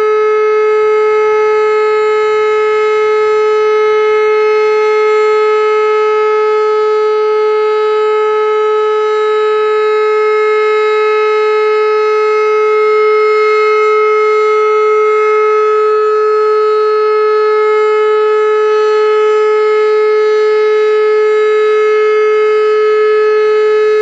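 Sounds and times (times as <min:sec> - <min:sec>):
warning siren: 0:00.0 - 0:24.0.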